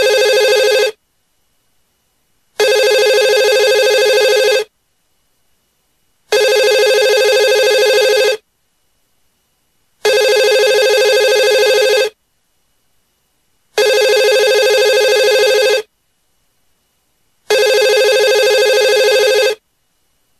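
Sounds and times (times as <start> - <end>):
telephone ringing: 0.0 - 1.0, 2.6 - 4.7, 6.3 - 8.4, 10.0 - 12.2, 13.8 - 15.9, 17.5 - 19.6.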